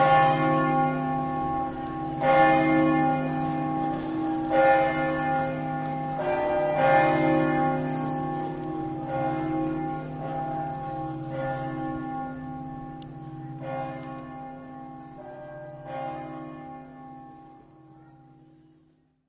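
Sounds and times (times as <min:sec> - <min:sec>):
church bells ringing in Cividale: 0:00.0 - 0:19.0.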